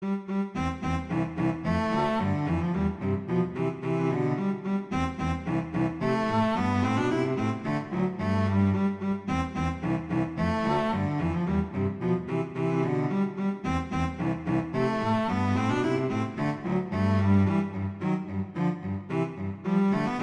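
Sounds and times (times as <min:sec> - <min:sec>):
viola duet: 0:00.0 - 0:20.2.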